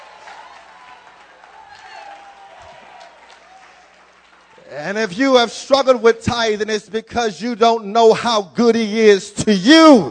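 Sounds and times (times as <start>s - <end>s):
audience clapping hands: 0.0s - 5.0s
speech: 4.7s - 10.0s.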